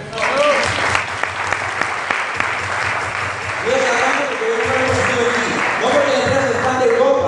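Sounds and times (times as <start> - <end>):
audience applause: 0.0 - 7.1.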